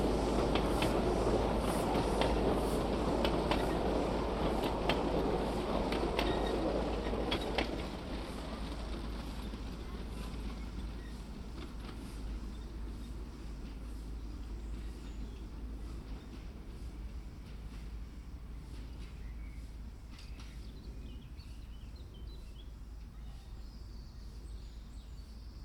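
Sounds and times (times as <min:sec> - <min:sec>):
steam train in the Bois de Boulogne: 0:00.0 - 0:25.6.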